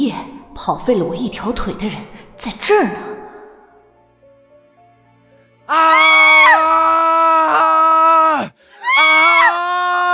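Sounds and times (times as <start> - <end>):
speech: 0.1 - 3.1, 5.7 - 6.2
woman screaming: 5.7 - 10.1.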